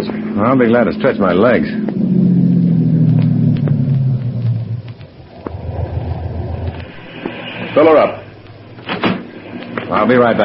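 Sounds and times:
speech: 0.4s - 2.2s, 7.7s - 8.2s, 9.9s - 10.4s
car pulling into gas station: 1.8s - 6.6s.

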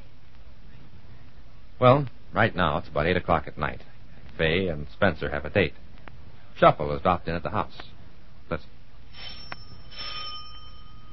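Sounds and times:
faint hiss: 0.0s - 11.1s
speech: 1.8s - 5.8s, 6.6s - 7.9s, 8.5s - 9.4s
doorbell ringing at front door: 9.2s - 11.1s.

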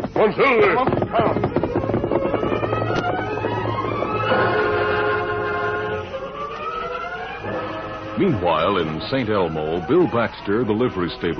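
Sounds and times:
westbound freight train rolling through a small western town: 0.0s - 11.3s
speech: 0.2s - 1.8s, 8.2s - 11.3s
sustained tonal whistle-like chord: 2.9s - 11.3s.

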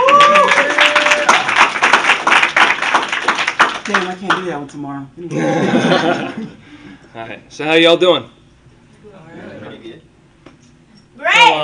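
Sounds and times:
audience applause and clapping: 0.0s - 4.3s
speech: 4.2s - 8.4s, 11.2s - 11.6s
laughter: 5.4s - 6.6s.

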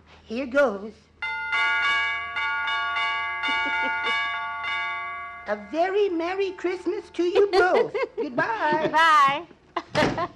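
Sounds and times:
speech: 0.3s - 1.1s, 3.6s - 4.4s, 5.5s - 10.3s
broken door chimes ringing: 1.2s - 7.1s
laughter: 3.4s - 4.2s, 7.3s - 10.3s.

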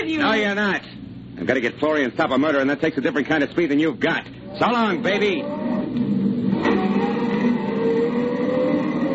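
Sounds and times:
speech: 0.0s - 6.2s
car engine roaring under throttle accelerating away: 5.0s - 9.1s.

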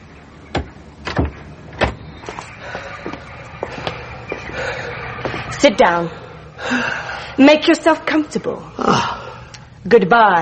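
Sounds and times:
vestry door opening: 0.5s - 2.6s
speech: 5.6s - 9.1s, 9.8s - 10.4s.

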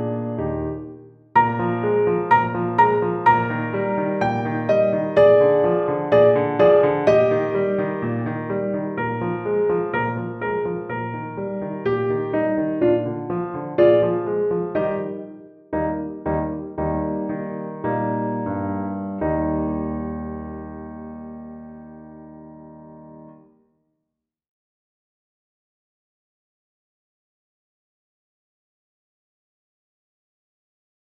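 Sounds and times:
sonatina accompaniment: 0.0s - 23.6s.

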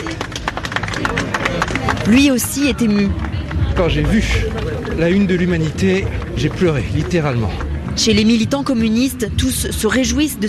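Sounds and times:
crowd applause: 0.0s - 8.0s
speech: 2.1s - 10.4s.

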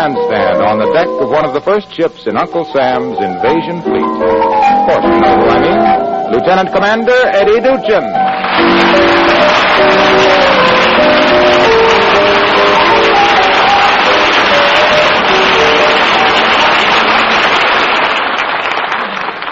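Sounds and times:
speech: 0.0s - 5.7s, 6.4s - 10.2s
audience applause: 8.2s - 19.4s.

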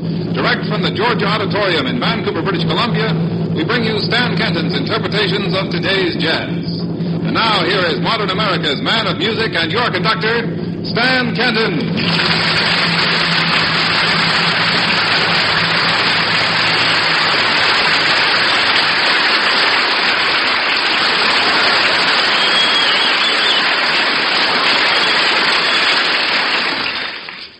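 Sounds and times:
speech: 0.4s - 14.4s
audience applause being rehearsed in Vancouver: 12.0s - 27.5s.

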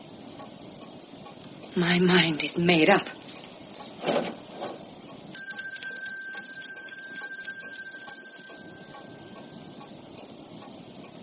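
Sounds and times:
speech: 1.8s - 3.2s
bell rung to summon a servant: 5.3s - 9.9s.

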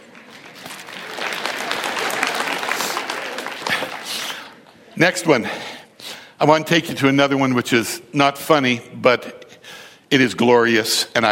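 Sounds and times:
audience clapping: 0.0s - 4.8s
speech: 5.0s - 5.8s, 6.4s - 9.4s, 10.1s - 11.3s.

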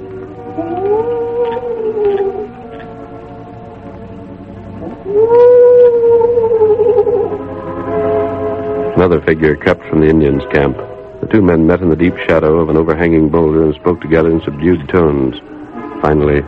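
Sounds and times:
low mournful owl cry: 0.1s - 2.8s, 4.8s - 9.0s
speech: 0.6s - 2.1s, 9.0s - 16.4s.

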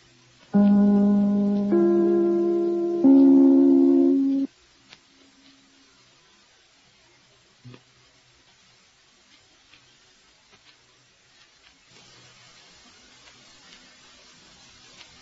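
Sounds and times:
three-note broadcast chime: 0.6s - 4.5s.

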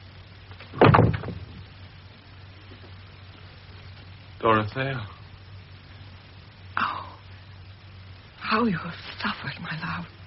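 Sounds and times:
door closing: 0.7s - 1.6s
speech: 4.4s - 5.2s, 8.6s - 10.2s.

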